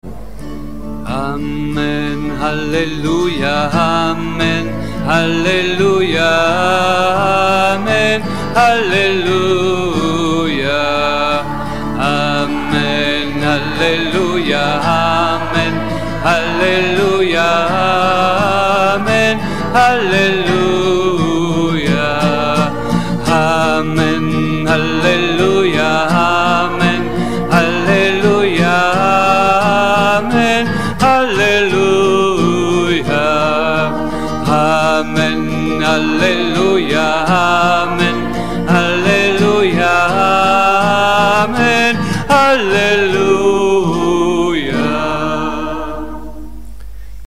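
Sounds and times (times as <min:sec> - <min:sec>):
singing: 0:01.0 - 0:46.7.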